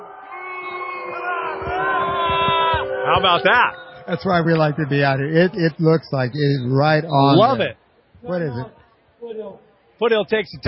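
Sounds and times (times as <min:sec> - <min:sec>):
stadium crowd cheering at a football play: 0:00.0 - 0:07.3
speech: 0:03.1 - 0:10.6.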